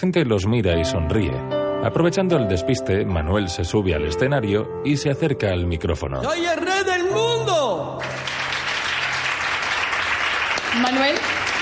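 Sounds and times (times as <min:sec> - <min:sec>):
speech: 0:00.0 - 0:08.5, 0:10.7 - 0:11.6
audience applause in a theatre: 0:08.0 - 0:11.6.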